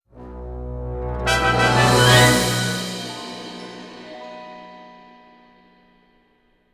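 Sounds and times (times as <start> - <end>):
battle win music: 0.1 - 4.6.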